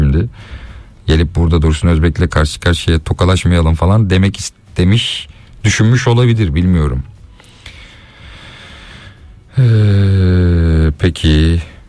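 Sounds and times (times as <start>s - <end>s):
speech: 0.1s - 7.1s, 9.6s - 11.7s
person yawning: 9.5s - 10.5s.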